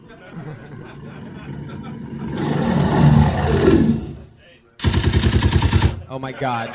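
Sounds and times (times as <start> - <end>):
laughter: 0.0 - 3.1, 6.1 - 6.7
bear roar sound effect: 0.4 - 4.3
rapid assault rifle gunfire: 4.8 - 6.0
speech: 6.2 - 6.7.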